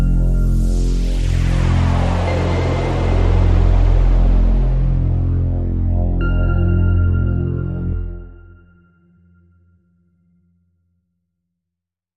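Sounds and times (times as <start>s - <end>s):
synth pad: 0.0s - 9.2s.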